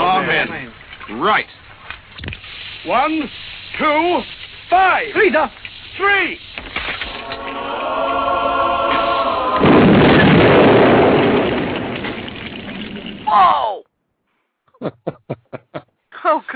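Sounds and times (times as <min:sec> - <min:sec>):
speech: 0:00.4 - 0:01.6, 0:02.2 - 0:08.2, 0:13.3 - 0:13.7, 0:14.8 - 0:16.5
Holy Hand Grenade explosion sound effect: 0:07.0 - 0:13.3
laughter: 0:14.8 - 0:15.9.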